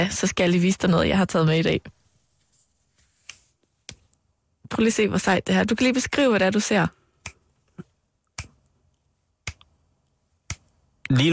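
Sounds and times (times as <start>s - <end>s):
speech: 0.0s - 2.0s, 4.7s - 7.0s, 11.1s - 11.3s
crisp finger snaps: 7.2s - 7.4s, 8.3s - 8.6s.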